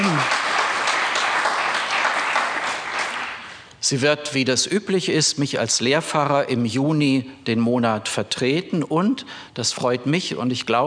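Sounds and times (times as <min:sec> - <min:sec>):
audience clapping: 0:00.0 - 0:03.7
speech: 0:03.9 - 0:10.8.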